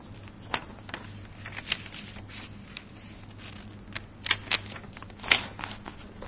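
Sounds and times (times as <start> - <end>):
faint low hum: 0.0 - 6.2
sheet of paper being folded: 0.0 - 6.2.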